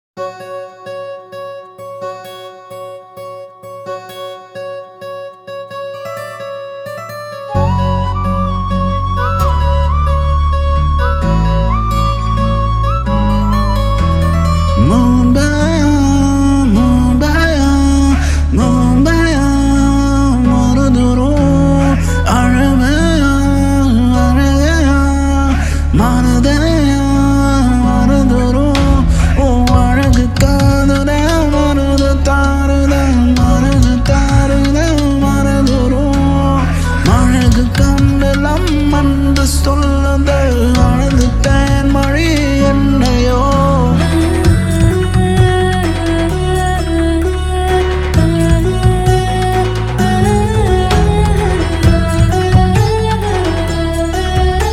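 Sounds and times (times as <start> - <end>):
love background music mix: 0.2 - 54.7.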